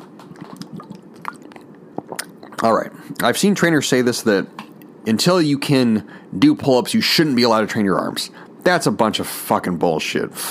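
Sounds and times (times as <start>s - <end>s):
person sipping water: 0.1s - 3.2s
speech: 2.6s - 10.4s.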